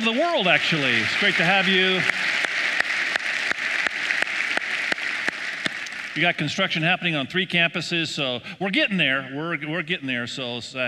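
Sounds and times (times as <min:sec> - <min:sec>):
church audience applause: 0:00.0 - 0:06.5
speech: 0:00.1 - 0:02.5, 0:06.2 - 0:10.8.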